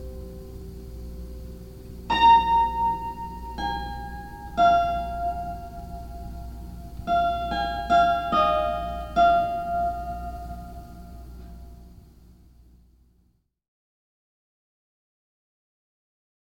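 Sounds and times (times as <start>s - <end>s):
hammered harp: 2.1s - 11.6s.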